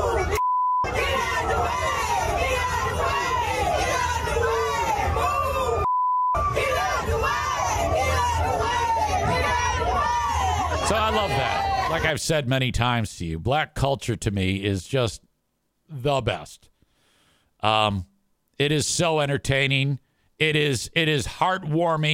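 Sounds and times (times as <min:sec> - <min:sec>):
large crowd singing a song: 0:00.0 - 0:12.0
short bleep tones: 0:00.4 - 0:00.9, 0:05.8 - 0:06.5
speech: 0:11.1 - 0:15.3, 0:15.9 - 0:16.7, 0:17.6 - 0:22.1.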